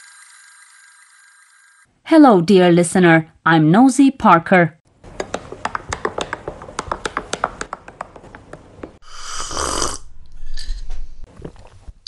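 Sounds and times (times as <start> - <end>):
speech: 2.1 - 4.8
person slurping coffee: 9.0 - 12.0.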